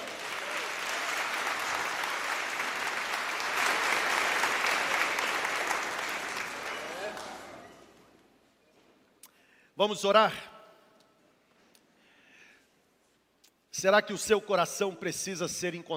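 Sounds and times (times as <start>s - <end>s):
audience applause: 0.0s - 7.9s
speech: 9.8s - 10.5s, 13.8s - 15.9s.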